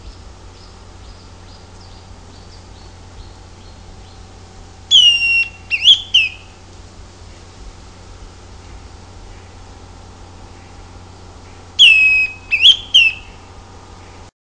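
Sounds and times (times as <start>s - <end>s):
Greenish schiffornis Schiffornis virescens whistled song: 0.0s - 6.6s, 10.2s - 14.3s.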